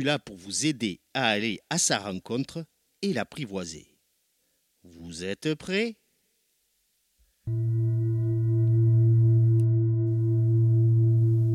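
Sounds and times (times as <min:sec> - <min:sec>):
speech: 0:00.0 - 0:03.9, 0:04.8 - 0:06.0, 0:07.5 - 0:07.7
gong struck and ringing: 0:07.5 - 0:11.5.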